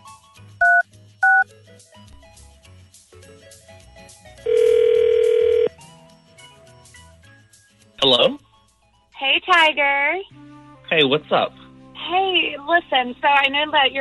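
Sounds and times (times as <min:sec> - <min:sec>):
telephone number being dialed: 0:00.6 - 0:01.5, 0:04.5 - 0:05.7
speech: 0:09.5 - 0:10.3, 0:10.9 - 0:13.9.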